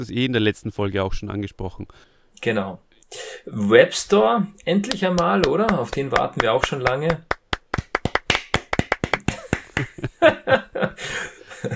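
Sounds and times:
speech: 0.0 - 7.3, 10.0 - 10.6
applause sound effect: 4.9 - 10.0
laughter: 9.2 - 11.7.

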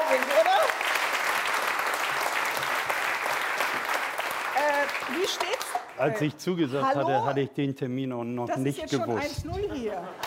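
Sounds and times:
audience applause: 0.0 - 6.1
speech: 5.2 - 10.2.

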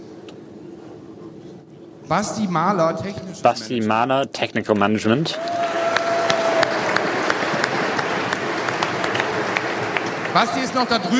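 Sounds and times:
speech: 2.1 - 5.7, 10.4 - 11.1
audience applause: 5.3 - 11.1.

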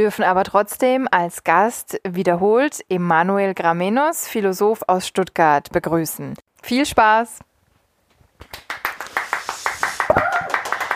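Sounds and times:
speech: 0.0 - 7.5
hand claps: 8.4 - 10.9.

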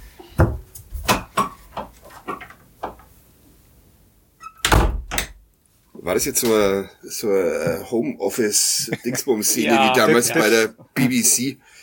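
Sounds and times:
wooden door knocks and thuds: 0.4 - 1.4, 4.6 - 5.4
door banging shut: 4.6 - 5.4
speech: 6.1 - 11.8
laughter: 8.6 - 11.3.

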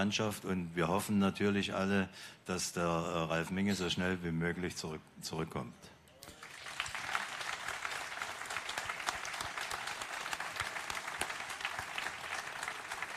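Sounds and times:
speech: 0.0 - 5.9
audience applause: 6.3 - 13.1.

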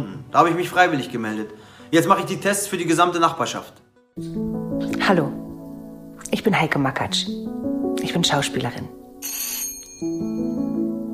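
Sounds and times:
speech: 0.0 - 5.4, 6.3 - 9.4
doorbell ringing: 9.2 - 10.9.

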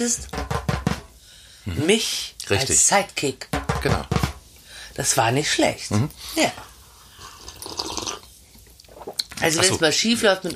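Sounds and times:
speech: 0.0 - 0.4, 1.6 - 4.3, 5.0 - 6.7, 9.4 - 10.5
coffee sipped from reusable plastic cups: 7.0 - 9.4.

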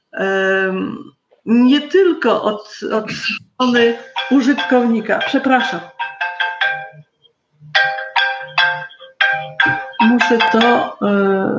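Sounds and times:
speech: 0.2 - 6.0, 10.3 - 11.5
phone ringtone: 3.6 - 11.0.

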